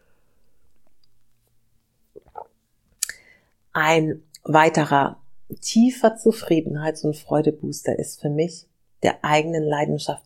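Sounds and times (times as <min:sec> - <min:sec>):
person swallowing a sip of water: 0:02.1 - 0:03.2
wet mouth click: 0:02.2 - 0:03.2
speech: 0:03.8 - 0:10.2.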